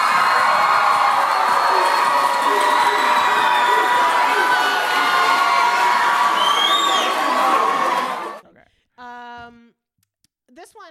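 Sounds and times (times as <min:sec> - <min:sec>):
crowd cheering, screaming and whooping as a celebratory sound effect: 0:00.0 - 0:08.4.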